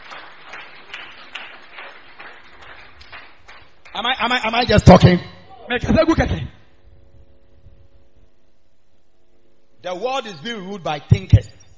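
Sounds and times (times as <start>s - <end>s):
audience clapping hands: 0.0s - 4.6s
speech: 4.0s - 6.6s, 9.8s - 11.6s.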